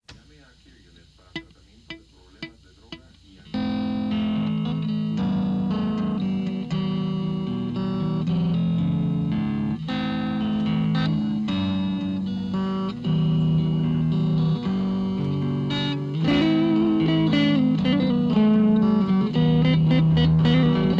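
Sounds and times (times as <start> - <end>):
riff tapes: 0.8 - 20.9.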